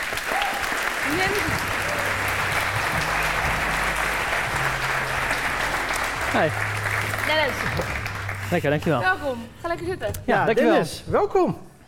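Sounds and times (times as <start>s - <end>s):
audience applause welcoming a guest: 0.0s - 8.8s
speech: 1.1s - 1.8s, 6.3s - 6.7s, 7.3s - 11.7s.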